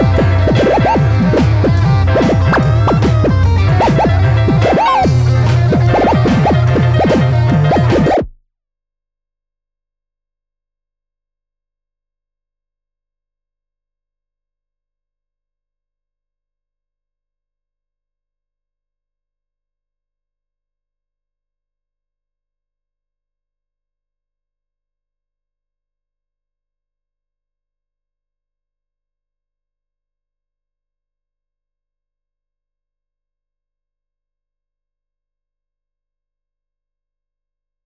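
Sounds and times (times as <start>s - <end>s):
rhythm: 0.0s - 8.3s.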